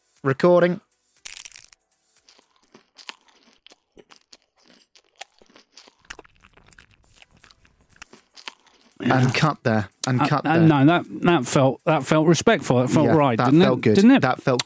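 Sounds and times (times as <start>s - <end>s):
speech: 0.2s - 0.9s, 9.1s - 14.6s
person chewing crunchy food: 1.2s - 10.2s, 14.4s - 14.6s.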